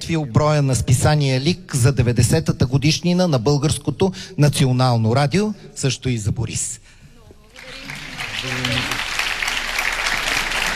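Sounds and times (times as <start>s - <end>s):
speech: 0.1s - 6.9s
audience applause at ceremony: 7.5s - 10.7s.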